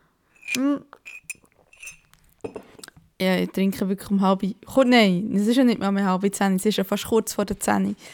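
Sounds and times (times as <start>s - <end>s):
ceramic or glass teacup clinking: 0.4s - 2.8s
speech: 0.5s - 1.2s, 3.2s - 8.1s.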